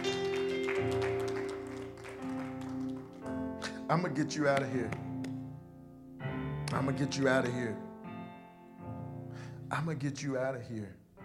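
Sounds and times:
audience clapping hands: 0:00.0 - 0:05.4
speech: 0:03.9 - 0:05.1, 0:06.8 - 0:07.9, 0:09.7 - 0:11.0.

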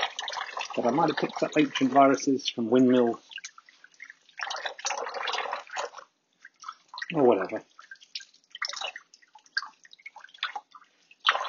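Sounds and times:
tap water running while someone washes their hands: 0:00.0 - 0:11.4
speech: 0:00.8 - 0:03.3, 0:07.2 - 0:07.7.

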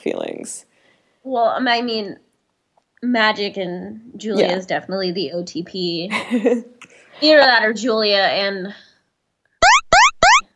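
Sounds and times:
speech: 0:00.0 - 0:02.2, 0:03.0 - 0:08.8
beeping sound effect: 0:09.6 - 0:10.4.

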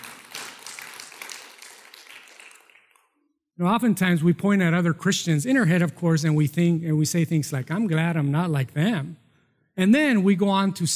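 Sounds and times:
audience clapping: 0:00.0 - 0:03.1
speech: 0:03.6 - 0:09.2, 0:09.8 - 0:10.9.

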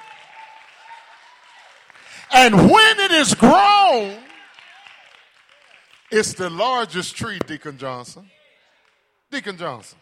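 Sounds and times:
audience clapping hands: 0:00.0 - 0:08.0
speech: 0:02.2 - 0:04.3, 0:06.1 - 0:08.4, 0:09.3 - 0:10.0.

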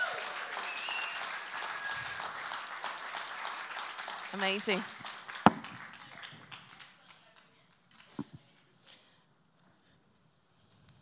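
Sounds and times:
audience applause: 0:00.0 - 0:08.2
speech: 0:04.3 - 0:05.1.

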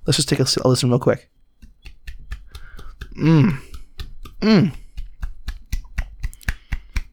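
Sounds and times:
speech: 0:00.1 - 0:01.4, 0:03.2 - 0:03.7, 0:04.4 - 0:04.8
two hands clapping together: 0:01.6 - 0:07.1.

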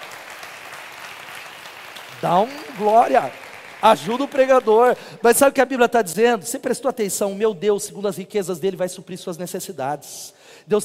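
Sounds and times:
audience applause: 0:00.0 - 0:05.2
speech: 0:02.2 - 0:10.8.

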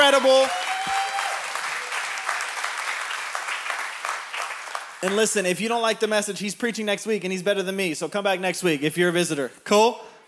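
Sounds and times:
audience applause for pastors: 0:00.0 - 0:05.4
speech: 0:00.1 - 0:01.0, 0:05.0 - 0:10.2.

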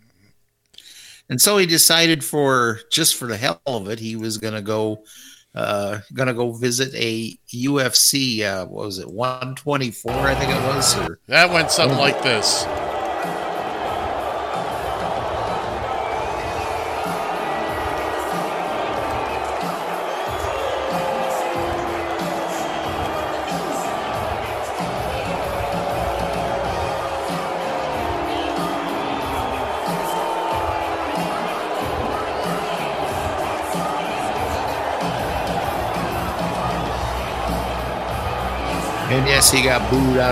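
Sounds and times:
speech: 0:01.3 - 0:13.0, 0:39.4 - 0:40.3
large arena crowd booing: 0:10.1 - 0:40.3
shouts rising above the crowd: 0:10.1 - 0:40.3.

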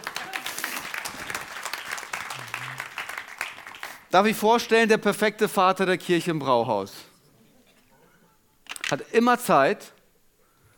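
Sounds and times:
crowd applauding: 0:00.0 - 0:04.1
speech: 0:04.1 - 0:07.1, 0:08.9 - 0:10.0.

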